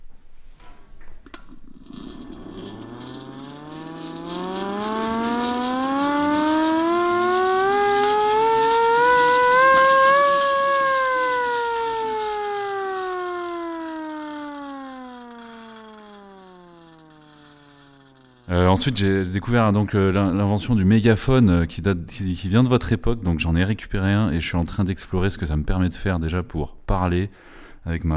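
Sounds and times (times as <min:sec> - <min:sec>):
small hand-cranked siren winding up: 0:01.5 - 0:20.7
speech: 0:18.8 - 0:28.1.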